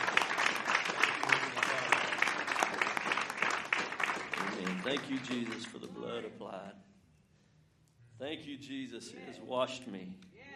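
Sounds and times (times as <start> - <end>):
audience clapping hands: 0.0 - 6.1
speech: 4.9 - 6.9, 8.2 - 10.3.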